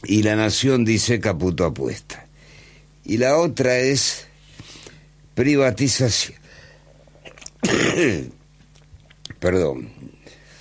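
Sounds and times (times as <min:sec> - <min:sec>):
speech: 0:00.0 - 0:02.2, 0:03.0 - 0:04.3, 0:05.4 - 0:06.4, 0:07.6 - 0:08.4, 0:09.4 - 0:10.2
quiet hum: 0:00.0 - 0:10.5
person sneezing: 0:07.2 - 0:08.4.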